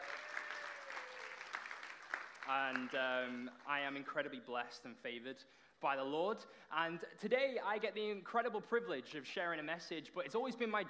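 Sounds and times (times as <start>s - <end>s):
audience cheering and applause: 0.0s - 3.5s
speech: 2.5s - 10.8s.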